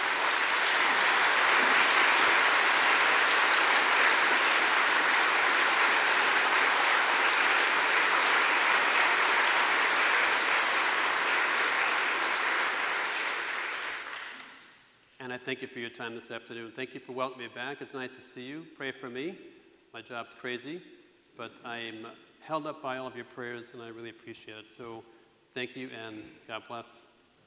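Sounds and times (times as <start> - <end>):
audience applause: 0.0 - 14.4
speech: 15.3 - 27.1.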